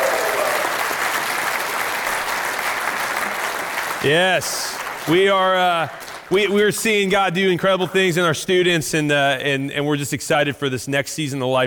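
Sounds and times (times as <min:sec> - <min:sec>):
church congregation applauding graduates on graduation Sunday: 0:00.0 - 0:07.5
speech: 0:04.0 - 0:11.6.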